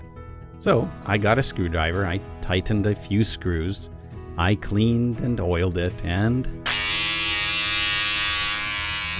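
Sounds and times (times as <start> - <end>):
speech: 0.6 - 6.8
repaired electric hair shears buzzing: 6.6 - 9.1.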